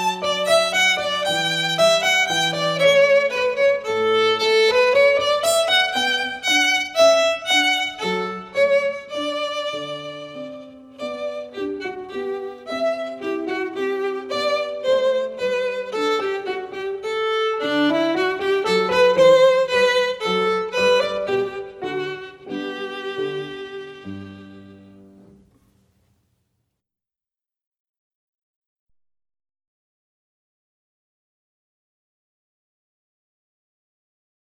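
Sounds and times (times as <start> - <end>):
violin minuet: 0.0 - 25.5.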